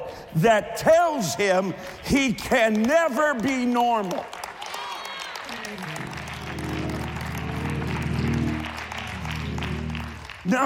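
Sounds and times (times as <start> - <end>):
speech: 0.3 - 4.4, 5.7 - 6.0, 10.5 - 10.6
audience clapping: 1.7 - 10.6.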